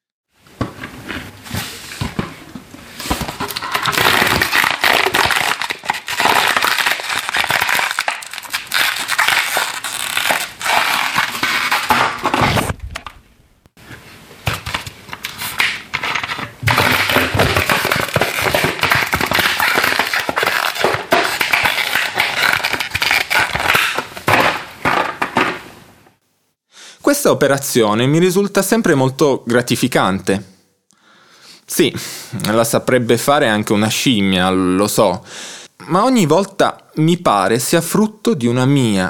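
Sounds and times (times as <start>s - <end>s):
plastic bottles crushing: 2.0s - 13.2s, 14.5s - 25.7s
speech: 27.3s - 30.5s, 31.8s - 39.0s.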